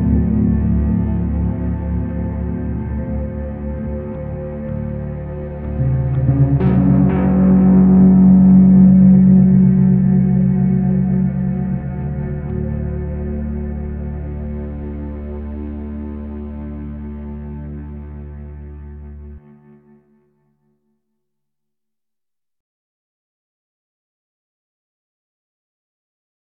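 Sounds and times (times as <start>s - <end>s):
ambient music: 0.0s - 20.4s.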